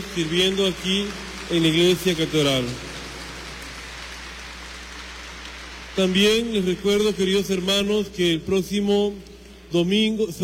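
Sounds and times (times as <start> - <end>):
audience applause: 0.0 - 7.0
speech: 0.2 - 2.8, 6.0 - 10.4.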